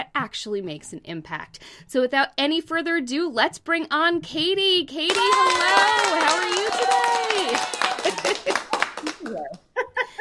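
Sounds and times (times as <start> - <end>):
speech: 0.0 - 8.6
high voices cheering and laughing: 5.1 - 8.7
applause: 5.1 - 9.6.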